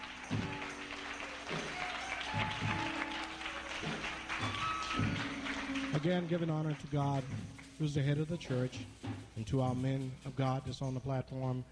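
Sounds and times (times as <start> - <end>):
crowd applauding: 0.0 - 8.2
speech: 6.0 - 11.7.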